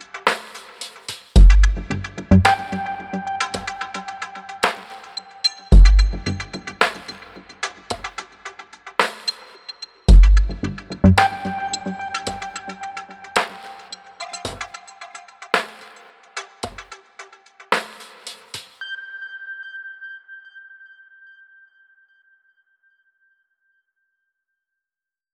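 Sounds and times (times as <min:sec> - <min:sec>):
rhythmic suspense music: 0:01.4 - 0:18.5.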